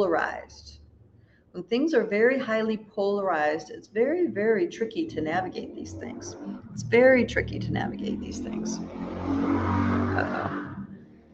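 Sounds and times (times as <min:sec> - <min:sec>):
speech: 0:00.0 - 0:00.8, 0:01.5 - 0:10.6
motorcycles revving outside: 0:04.2 - 0:11.3.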